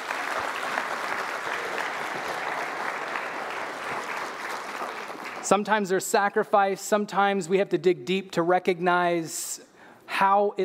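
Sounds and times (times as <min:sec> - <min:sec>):
audience applause: 0:00.0 - 0:05.6
speech: 0:05.5 - 0:10.6.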